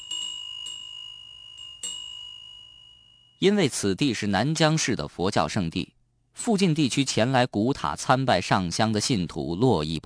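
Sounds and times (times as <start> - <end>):
wind chimes ringing: 0.0 - 3.4
speech: 3.4 - 10.0.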